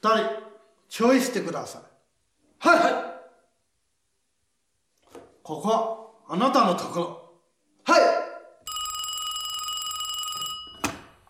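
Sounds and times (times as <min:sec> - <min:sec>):
speech: 0:00.0 - 0:01.9, 0:02.6 - 0:03.1, 0:05.5 - 0:07.2, 0:07.9 - 0:08.2
telephone ringing: 0:08.7 - 0:11.2.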